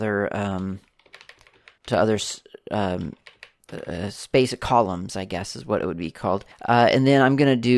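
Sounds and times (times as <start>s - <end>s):
speech: 0.0s - 0.9s, 1.9s - 7.7s
typing on a computer keyboard including backspace presses: 0.8s - 2.0s, 3.0s - 3.8s.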